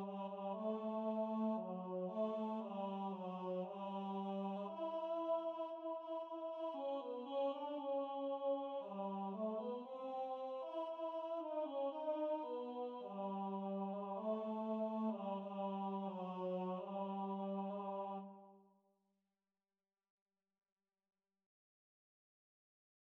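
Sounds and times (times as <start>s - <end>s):
tenor singing: 0.0s - 18.3s.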